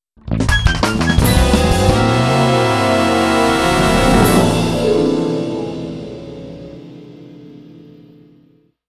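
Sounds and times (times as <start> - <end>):
mission failed jingle: 1.2 - 6.2.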